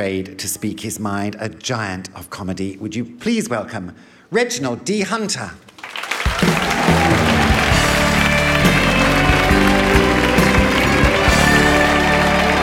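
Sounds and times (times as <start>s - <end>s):
speech: 0.0s - 5.7s
audience applause: 5.8s - 12.6s.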